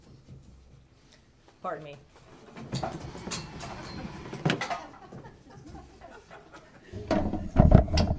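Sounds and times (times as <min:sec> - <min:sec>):
speech: 0:01.6 - 0:02.2, 0:02.8 - 0:04.1
table being dragged across floor: 0:02.2 - 0:05.2
laughter: 0:04.6 - 0:07.1.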